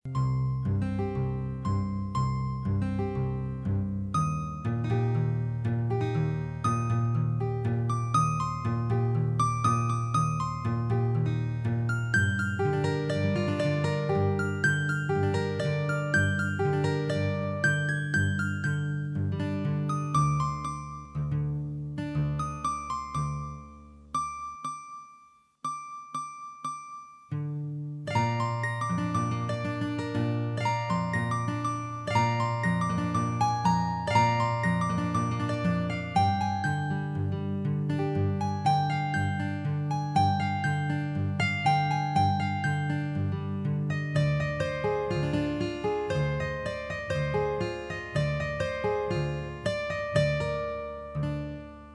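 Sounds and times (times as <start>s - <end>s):
guitar: 0.0s - 51.9s.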